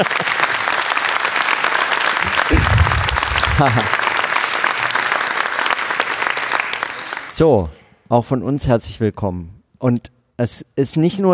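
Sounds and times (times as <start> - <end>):
laughter: 0.0 - 0.4, 2.2 - 4.0
speech: 0.0 - 0.4, 3.6 - 4.0, 7.4 - 11.3
audience applause: 0.0 - 7.3.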